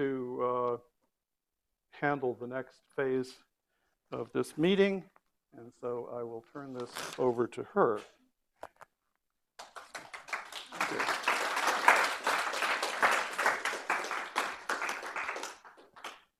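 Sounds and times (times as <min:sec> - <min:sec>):
speech: 0:02.0 - 0:03.5, 0:04.1 - 0:08.2
audience clapping: 0:09.6 - 0:16.3.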